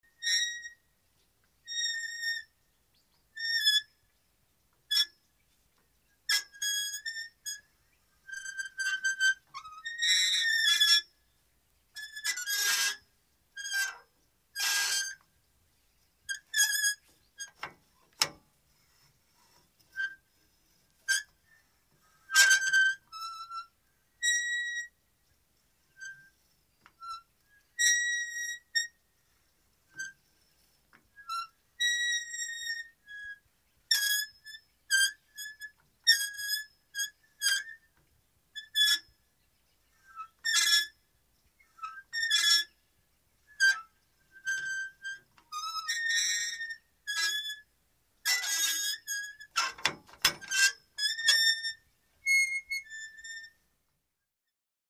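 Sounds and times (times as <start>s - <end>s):
small metal hinges squeaking: 0.1s - 0.8s, 1.6s - 2.5s, 6.3s - 11.1s, 12.0s - 13.0s, 13.6s - 15.3s, 16.2s - 20.4s, 21.0s - 25.0s, 25.9s - 29.1s, 29.9s - 39.2s, 39.9s - 42.8s, 43.5s - 47.7s, 48.3s - 53.6s.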